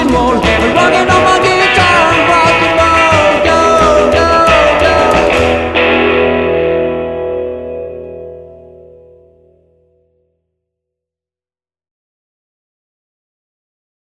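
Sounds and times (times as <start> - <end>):
rock and roll guitar: 0.0 - 10.2.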